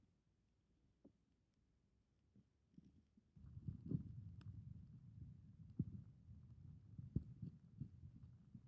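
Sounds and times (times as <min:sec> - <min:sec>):
heartbeat in left ear: 0:03.4 - 0:08.6.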